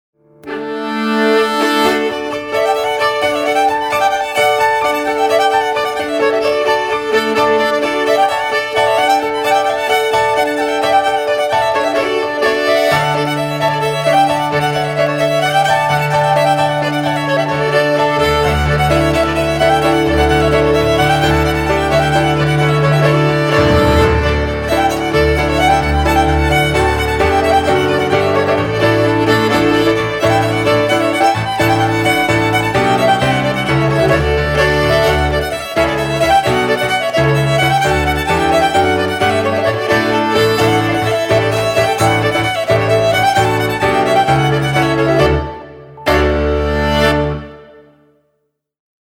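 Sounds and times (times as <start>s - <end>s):
polska dance tune: 0.4s - 47.9s.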